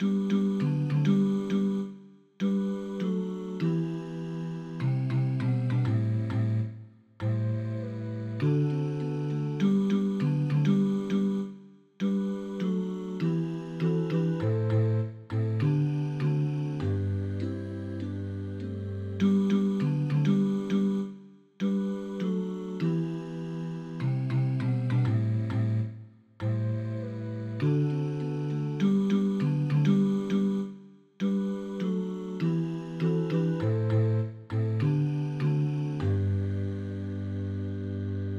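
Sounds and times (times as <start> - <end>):
bass: 0.0 - 38.3.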